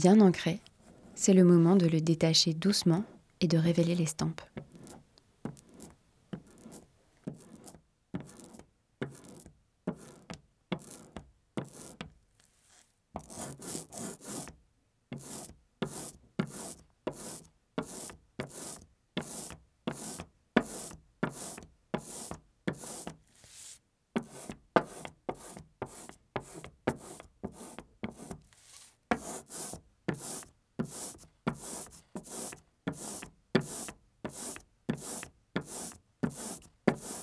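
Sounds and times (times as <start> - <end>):
speech: 0.0 - 4.7
paper rubbed over a linocut block: 5.6 - 8.6, 11.8 - 14.6, 15.2 - 37.2.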